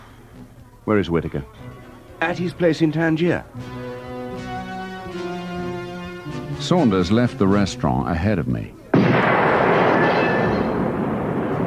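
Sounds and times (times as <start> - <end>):
speech: 0.9 - 3.8, 6.6 - 8.8
doors exploding: 8.9 - 11.6.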